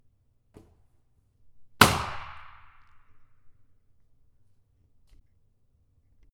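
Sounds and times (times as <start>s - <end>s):
pop: 1.8s - 3.2s.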